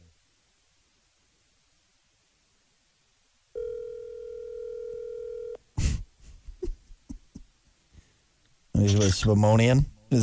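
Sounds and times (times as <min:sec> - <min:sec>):
telephone dial tone: 0:03.6 - 0:05.6
speech: 0:08.8 - 0:10.2.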